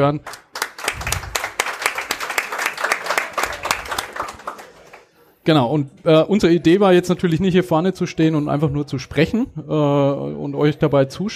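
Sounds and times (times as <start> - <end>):
speech: 0.0 - 0.4, 5.5 - 11.3
live audience applause: 0.3 - 5.2.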